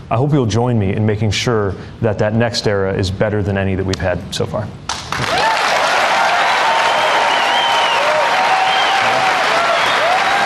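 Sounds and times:
speech: 0.1s - 4.9s
audience standing ovation at a primetime Fox News event: 4.9s - 10.4s
audience whoops and cheers: 5.2s - 10.4s.

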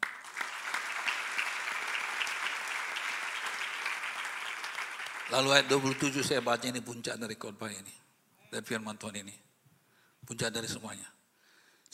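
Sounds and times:
audience applause: 0.0s - 6.8s
speech: 5.3s - 9.4s, 10.2s - 11.2s.

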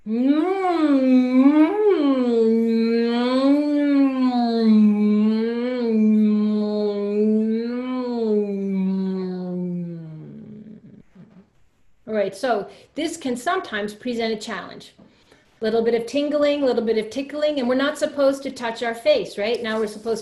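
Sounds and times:
humming while chewing as vocal exercise: 0.0s - 11.6s
speech: 12.4s - 15.0s, 15.6s - 20.2s.

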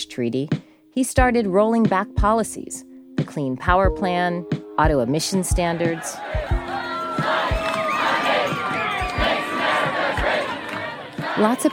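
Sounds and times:
speech: 0.2s - 7.3s, 11.4s - 11.7s
large marching crowd cheering and shouting: 5.8s - 11.7s.

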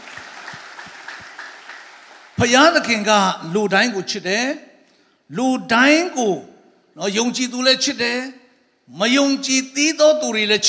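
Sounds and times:
congregation clapping hands in praise of God: 0.0s - 3.0s
speech: 2.4s - 4.7s, 5.3s - 10.6s.

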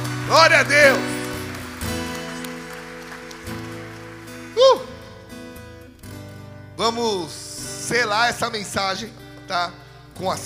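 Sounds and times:
audience applause: 0.0s - 5.1s
crowd cheering: 0.0s - 5.2s
speech: 0.3s - 1.1s, 6.8s - 10.4s.

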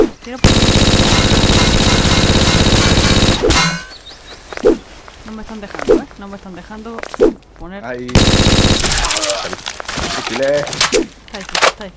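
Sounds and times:
speech: 0.0s - 1.0s, 5.4s - 9.7s, 10.3s - 11.9s
scattered gunfire in a video game: 0.4s - 3.9s, 8.1s - 9.6s
turret firing in a video game: 0.4s - 3.9s, 8.1s - 9.4s.

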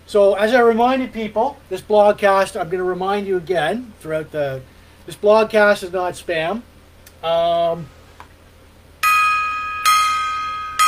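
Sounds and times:
speech: 0.1s - 8.0s
gong being struck: 9.0s - 10.8s.

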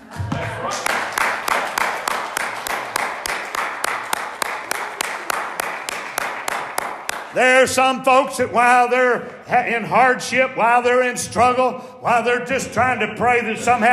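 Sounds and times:
rhythmic hand clapping: 0.0s - 7.4s
noise: 0.0s - 13.9s
speech: 7.4s - 13.9s.

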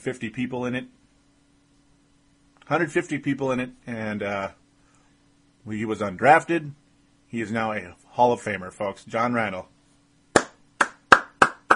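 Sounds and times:
speech: 0.0s - 1.0s, 2.7s - 4.6s, 5.6s - 9.7s
quick hand clap: 10.3s - 11.7s.

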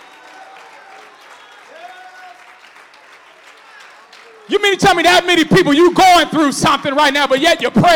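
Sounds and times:
scattered cheers and whoops: 0.0s - 2.8s
audience applauding in praise: 0.0s - 4.8s
speech: 4.5s - 7.9s.

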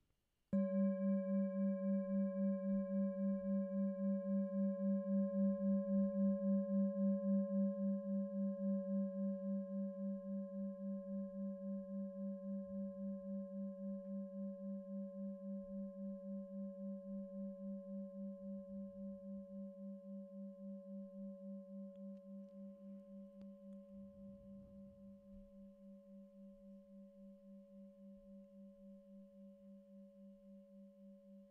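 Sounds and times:
meditation bell ringing: 0.6s - 26.5s.

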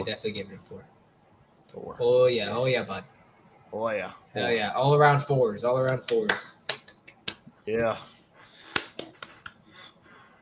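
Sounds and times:
speech: 0.0s - 1.0s, 1.7s - 6.7s, 7.7s - 8.2s
weak hand claps: 5.8s - 7.5s, 8.6s - 9.6s.

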